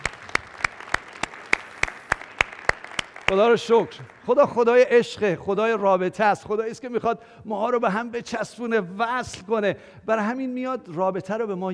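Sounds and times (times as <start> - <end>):
applause during a church sermon: 0.0 - 4.9
speech: 3.3 - 11.7.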